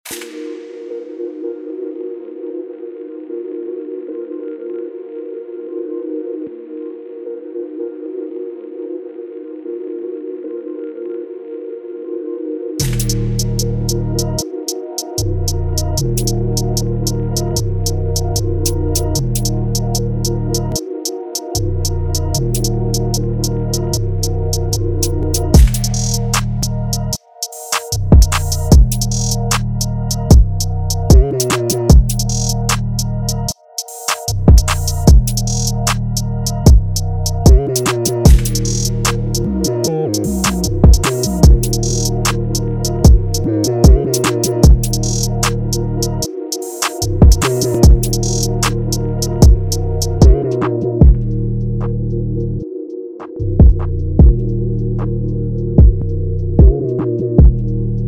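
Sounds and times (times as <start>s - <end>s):
instrumental music: 12.8s - 58.0s.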